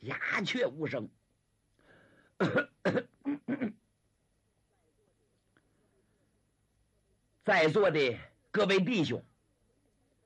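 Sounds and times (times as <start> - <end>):
speech: 0.0 - 1.2, 2.4 - 3.8, 7.4 - 9.3
voice imitating a warlord clearing his throat: 2.4 - 3.8.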